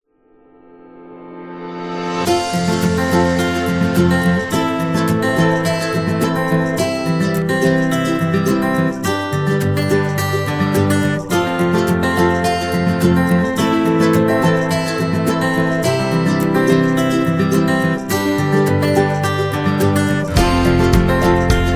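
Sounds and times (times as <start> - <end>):
happy music: 1.7 - 21.7.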